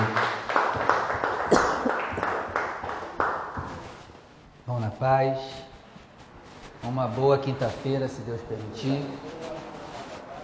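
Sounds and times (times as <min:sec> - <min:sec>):
audience clapping in rhythm: 0:00.0 - 0:04.2
speech: 0:05.0 - 0:05.7, 0:06.8 - 0:09.4.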